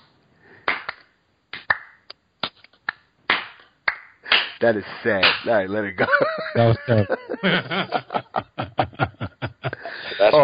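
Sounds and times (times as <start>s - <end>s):
slow clap: 0.6s - 4.6s
speech: 4.6s - 9.1s
laughter: 6.0s - 10.3s.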